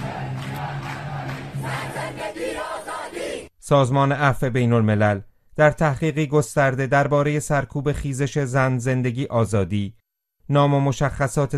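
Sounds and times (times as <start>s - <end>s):
protest crowd chanting slogan: 0.0s - 3.5s
shouting: 0.0s - 3.5s
speech: 3.7s - 11.5s.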